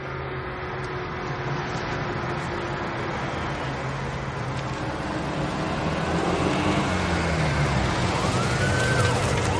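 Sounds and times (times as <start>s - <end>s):
arriving car engine rumble: 0.0s - 9.5s.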